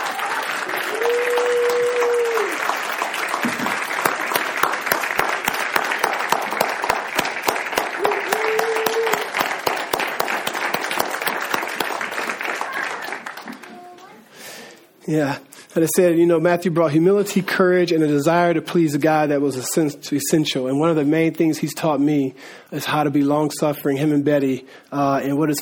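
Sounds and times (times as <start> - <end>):
audience round of applause: 0.0 - 14.2
speech: 15.1 - 25.6.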